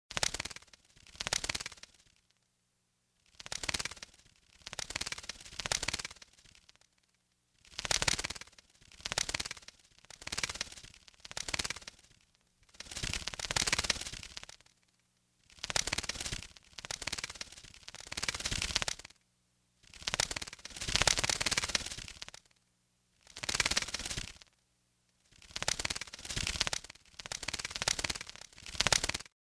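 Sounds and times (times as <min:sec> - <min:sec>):
bat flying back and forth: 0:00.1 - 0:02.2, 0:03.2 - 0:19.1, 0:19.8 - 0:22.5, 0:23.2 - 0:24.6, 0:25.3 - 0:29.4.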